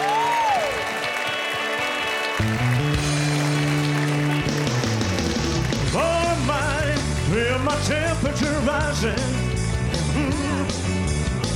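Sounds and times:
audience applause welcoming a tribute performer at a show: 0.0s - 8.1s
band music: 0.0s - 11.5s
speech: 2.4s - 2.8s, 7.8s - 9.4s.

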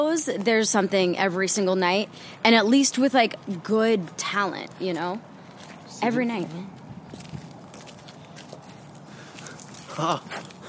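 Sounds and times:
speech: 0.0s - 5.3s, 6.0s - 7.3s, 10.0s - 10.5s
footsteps crunching on a gravel path: 5.4s - 10.6s.

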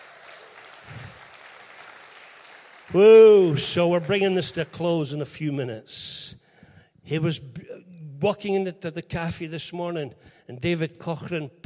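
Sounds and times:
applause: 0.0s - 5.6s
speech: 2.9s - 6.4s, 7.1s - 11.6s.

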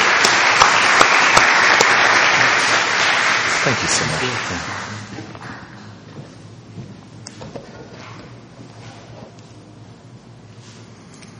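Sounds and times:
audience applause: 0.0s - 5.6s
speech: 3.6s - 5.1s.

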